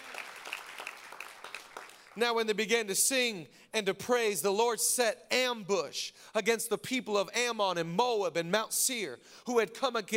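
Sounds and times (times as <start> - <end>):
audience clapping: 0.0 - 2.4
speech: 2.2 - 10.1.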